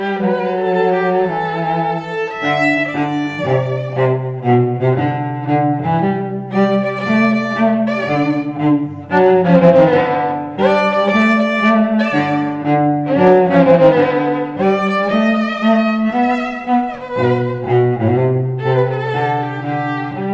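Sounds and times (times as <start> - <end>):
string duo: 0.2 - 20.1.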